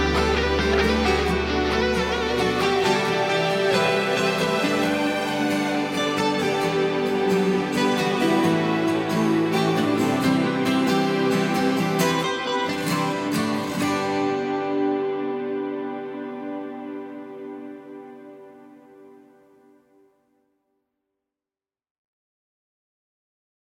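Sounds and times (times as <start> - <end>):
alternative rock music: 0.0 - 17.6.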